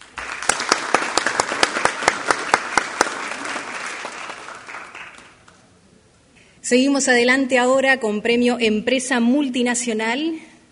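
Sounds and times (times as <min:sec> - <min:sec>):
audience applause: 0:00.0 - 0:05.5
speech: 0:06.7 - 0:10.5.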